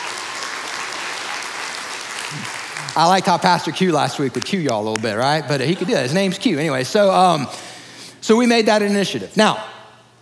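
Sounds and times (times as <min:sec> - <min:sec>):
congregation clapping at a church service: 0:00.0 - 0:06.3
speech: 0:02.3 - 0:07.6, 0:08.2 - 0:09.7.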